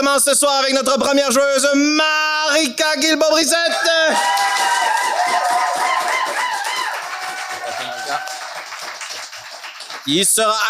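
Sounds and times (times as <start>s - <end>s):
speech: 0.0s - 5.8s, 10.1s - 10.6s
audience whoops and shouts: 3.7s - 8.6s
audience at a live game show clapping: 4.0s - 10.6s.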